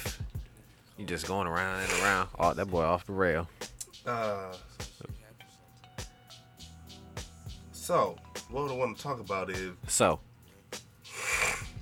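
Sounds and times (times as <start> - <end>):
speech: 1.0 - 4.8, 7.9 - 10.3
sniffling into the microphone: 1.8 - 2.3, 11.1 - 11.7.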